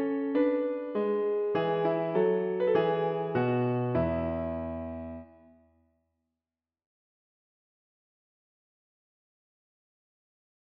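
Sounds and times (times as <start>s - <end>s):
piano lullaby: 0.0s - 5.6s.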